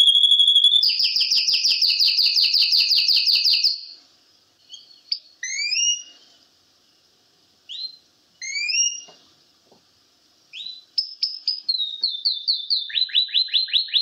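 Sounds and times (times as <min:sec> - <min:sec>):
male canary singing: 0:00.0 - 0:04.0, 0:04.6 - 0:06.2, 0:07.7 - 0:09.2, 0:10.5 - 0:14.0.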